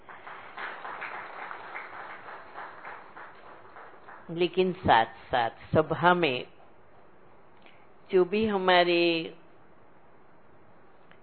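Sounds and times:
audience applause: 0.0 - 4.3
speech: 4.3 - 6.6, 8.1 - 9.4.

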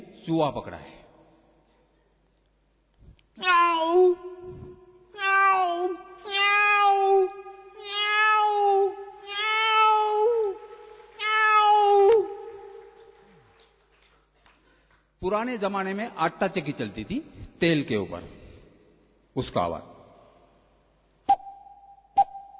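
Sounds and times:
speech: 0.2 - 1.0, 3.4 - 4.6, 15.2 - 18.4, 19.4 - 19.9
human voice imitating a cat meowing: 3.4 - 10.6, 11.2 - 12.6.

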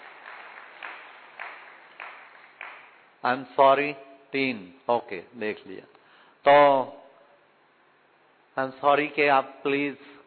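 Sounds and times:
audience applause: 0.0 - 3.0
speech: 3.2 - 7.0, 8.6 - 10.1.

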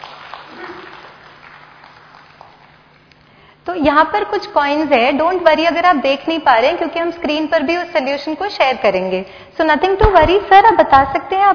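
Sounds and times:
audience applause: 0.0 - 3.0
speech: 3.7 - 11.5.

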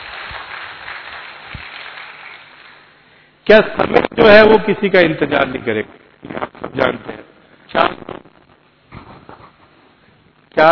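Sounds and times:
audience applause: 0.0 - 3.0
speech: 3.5 - 8.2.

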